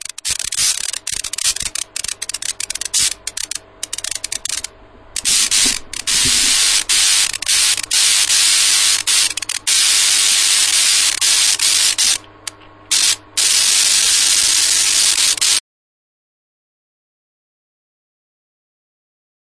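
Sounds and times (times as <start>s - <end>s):
electric sparking: 0.0s - 15.6s.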